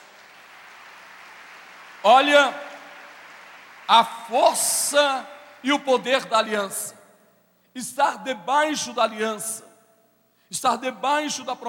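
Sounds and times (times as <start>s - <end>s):
audience applause: 0.0s - 4.1s
speech: 2.0s - 2.6s, 3.9s - 7.0s, 7.7s - 9.7s, 10.5s - 11.6s.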